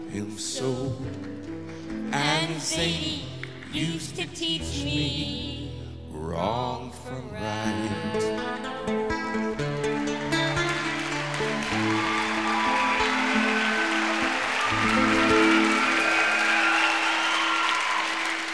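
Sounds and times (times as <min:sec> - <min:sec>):
speech: 0:00.1 - 0:09.0
audience applause: 0:10.3 - 0:18.5.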